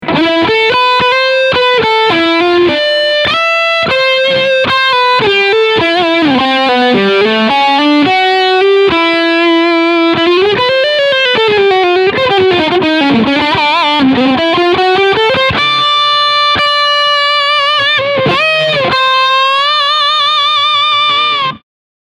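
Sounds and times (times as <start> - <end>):
overdriven guitar lead on bridge pickup: 0.0 - 21.6.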